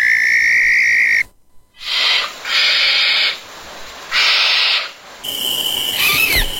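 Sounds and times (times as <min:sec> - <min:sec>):
barn owl screeching: 0:00.0 - 0:01.2, 0:01.8 - 0:03.4, 0:04.1 - 0:05.0, 0:05.9 - 0:06.5.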